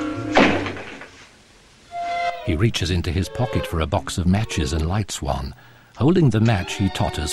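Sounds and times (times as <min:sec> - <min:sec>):
door slamming shut: 0:00.2 - 0:01.1
speech: 0:02.5 - 0:07.3.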